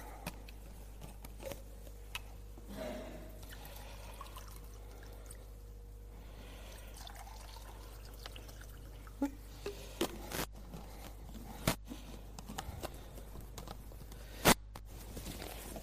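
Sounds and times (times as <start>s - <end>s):
low electrical hum: 0.0s - 15.8s
water poured into two glasses: 3.4s - 5.5s, 6.7s - 9.3s.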